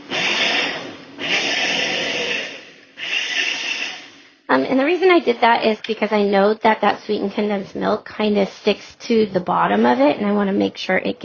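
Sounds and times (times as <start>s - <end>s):
blender pulsing: 0.0s - 4.2s
speech: 4.7s - 11.2s.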